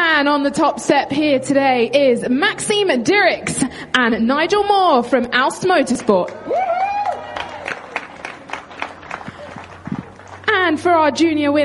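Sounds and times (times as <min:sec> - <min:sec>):
speech: 0:00.2 - 0:06.6, 0:10.7 - 0:11.6
audience applause: 0:06.2 - 0:10.5.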